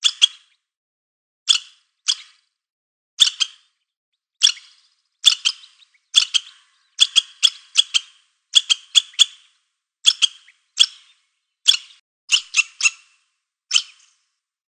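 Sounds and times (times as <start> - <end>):
squirrel giving rasping chatter notes: 4.4 - 9.4, 10.0 - 11.1, 11.7 - 14.0.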